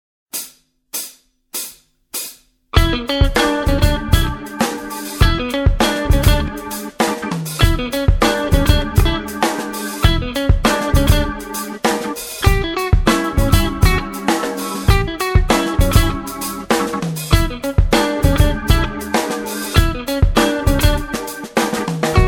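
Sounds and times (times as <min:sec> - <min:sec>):
blues jazz music: 0:02.8 - 0:22.2.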